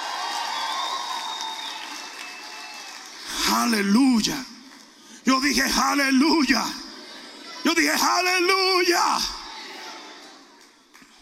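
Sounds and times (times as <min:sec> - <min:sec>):
audience shouting and cheering: 0:00.0 - 0:03.2, 0:07.0 - 0:10.6
speech: 0:03.6 - 0:04.5, 0:05.2 - 0:06.8, 0:07.6 - 0:09.4.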